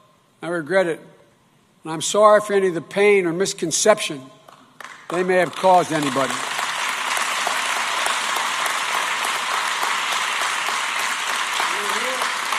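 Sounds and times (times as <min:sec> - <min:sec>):
speech: 0:00.4 - 0:01.2, 0:01.8 - 0:04.4, 0:05.1 - 0:06.5
crowd clapping: 0:04.5 - 0:12.5.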